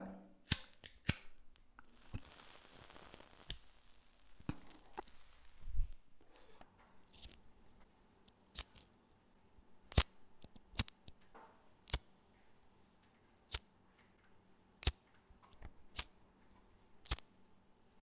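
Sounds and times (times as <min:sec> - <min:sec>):
lighter flicking: 0:00.5 - 0:06.5, 0:07.1 - 0:07.5, 0:08.3 - 0:08.9, 0:09.9 - 0:11.2, 0:11.8 - 0:12.1, 0:13.5 - 0:13.7, 0:14.8 - 0:16.2, 0:17.0 - 0:17.3.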